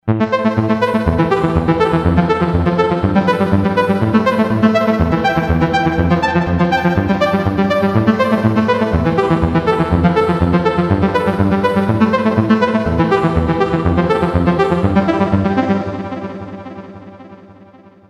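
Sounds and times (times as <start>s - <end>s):
Korg M1R synthesizer: 0.0s - 18.0s.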